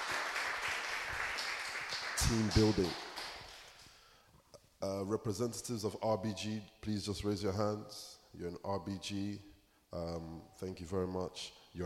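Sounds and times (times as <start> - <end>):
audience round of applause: 0.0 - 3.7
speech: 2.2 - 3.0, 4.8 - 11.8.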